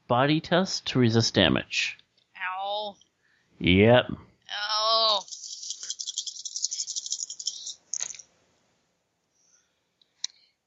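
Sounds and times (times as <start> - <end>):
speech: 0.1 - 2.0, 3.6 - 4.6
dice rolling: 5.2 - 8.2.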